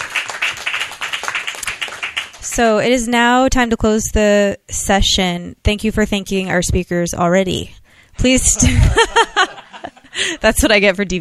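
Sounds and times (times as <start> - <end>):
crowd applauding: 0.0 - 2.5
speech: 2.6 - 9.6, 10.2 - 11.2
laughter: 8.3 - 10.4.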